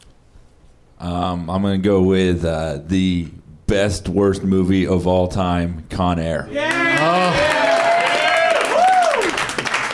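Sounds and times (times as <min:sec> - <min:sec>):
speech: 0:01.0 - 0:07.4
comedy club audience cheering with excited voices: 0:06.5 - 0:09.5
comedy club audience clapping: 0:06.6 - 0:09.9.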